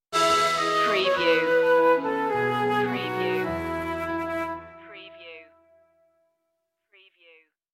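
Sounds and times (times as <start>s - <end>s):
orchestral stinger: 0.2s - 4.6s.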